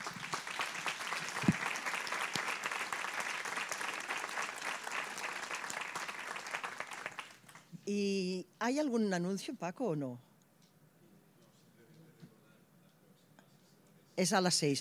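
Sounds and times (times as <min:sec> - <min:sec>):
audience applause: 0:00.0 - 0:07.7
speech: 0:07.9 - 0:10.3, 0:14.2 - 0:14.8.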